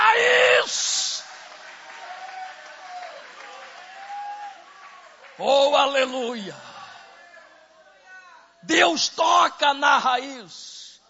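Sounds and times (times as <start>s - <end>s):
audience applause: 0.8s - 6.2s
speech: 5.4s - 6.7s, 8.7s - 10.8s.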